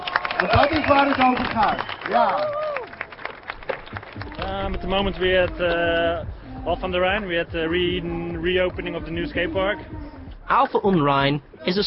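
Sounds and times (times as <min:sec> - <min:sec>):
people clapping at skate park opening: 0:00.0 - 0:06.3
speech: 0:00.4 - 0:02.6, 0:04.5 - 0:11.8.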